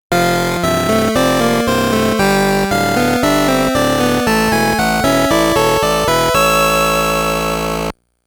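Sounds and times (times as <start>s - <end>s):
game stage clear music: 0.1s - 7.9s.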